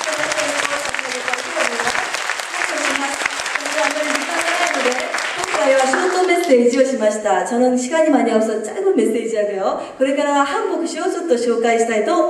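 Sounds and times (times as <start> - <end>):
audience applause: 0.0 - 6.7
speech: 6.5 - 12.2.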